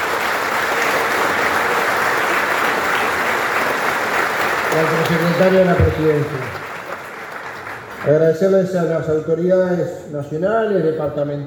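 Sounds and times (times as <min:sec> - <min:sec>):
audience applause: 0:00.0 - 0:08.8
speech: 0:04.8 - 0:06.6, 0:08.0 - 0:11.4.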